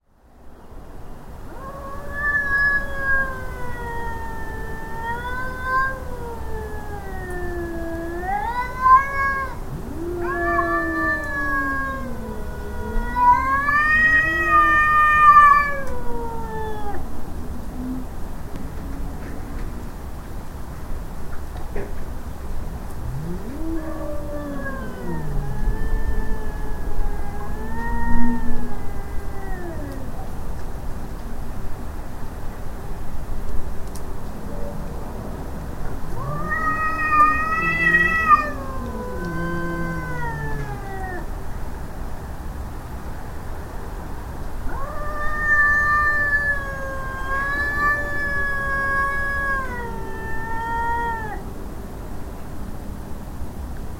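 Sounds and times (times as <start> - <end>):
light rain: 0.1 - 53.9
cats in a stand-off: 1.5 - 19.8, 22.9 - 30.4, 35.7 - 41.5, 44.6 - 51.6.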